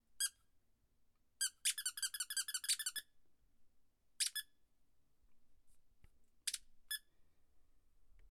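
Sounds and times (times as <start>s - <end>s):
squeaker toy: 0.2s - 0.4s, 1.4s - 3.1s, 4.2s - 4.5s, 6.5s - 7.1s.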